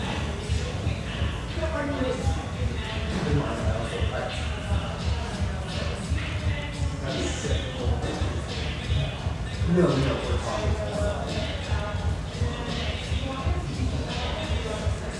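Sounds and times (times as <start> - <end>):
murmur of many voices in a coffee shop: 0.0 - 15.1.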